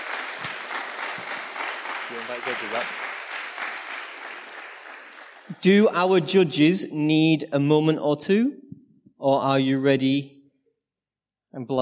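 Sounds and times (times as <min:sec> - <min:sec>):
crowd applauding: 0:00.0 - 0:06.2
speech: 0:02.1 - 0:03.0, 0:05.6 - 0:08.6, 0:09.2 - 0:10.4, 0:11.6 - 0:11.8.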